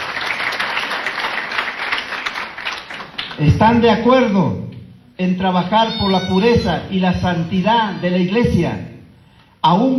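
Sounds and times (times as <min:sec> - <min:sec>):
audience applauding: 0:00.0 - 0:03.4
speech: 0:03.4 - 0:04.6, 0:05.2 - 0:08.9, 0:09.6 - 0:09.9.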